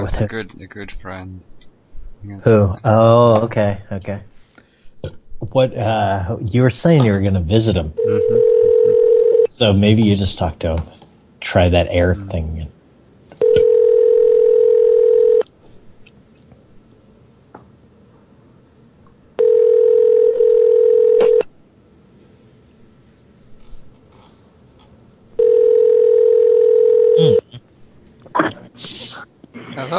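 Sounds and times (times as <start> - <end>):
speech: 0.0 - 1.6, 2.2 - 4.3, 5.0 - 8.4, 9.5 - 12.8
telephone line tone: 8.0 - 9.5, 13.4 - 15.4, 19.4 - 21.5, 25.4 - 27.4.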